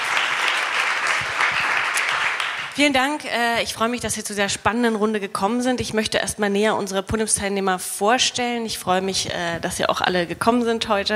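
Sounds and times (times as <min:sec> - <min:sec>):
audience applause: 0:00.0 - 0:02.9
speech: 0:02.8 - 0:11.1.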